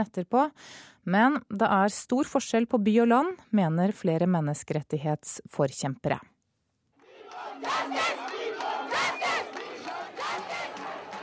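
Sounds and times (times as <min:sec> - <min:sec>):
speech: 0:00.0 - 0:06.3
crowd of women shouting for justice in protest: 0:07.0 - 0:11.2.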